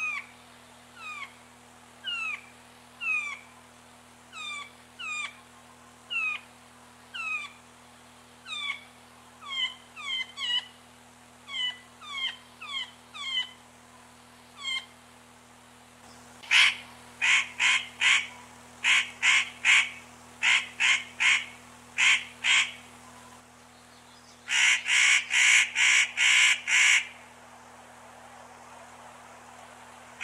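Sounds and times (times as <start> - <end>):
spotted nutcracker rasping calls: 0.0 - 0.4, 1.0 - 3.6, 4.3 - 5.5, 6.1 - 6.5, 7.1 - 7.7, 8.4 - 10.8, 11.4 - 13.7, 14.5 - 15.0, 16.4 - 23.4, 24.4 - 27.3.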